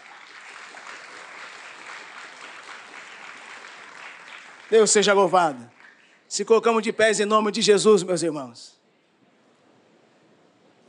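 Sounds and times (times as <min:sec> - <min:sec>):
audience applauding: 0:00.0 - 0:06.3
speech: 0:04.7 - 0:08.8.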